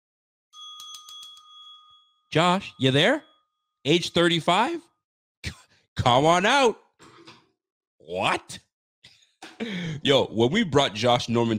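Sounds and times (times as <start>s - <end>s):
ringing bell sound effect: 0.6s - 3.7s
speech: 2.3s - 6.8s, 8.0s - 8.6s, 9.6s - 11.5s.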